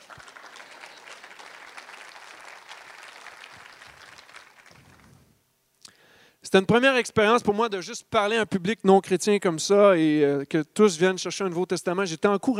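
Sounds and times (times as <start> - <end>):
audience applause: 0.0 - 5.2
speech: 6.5 - 12.5.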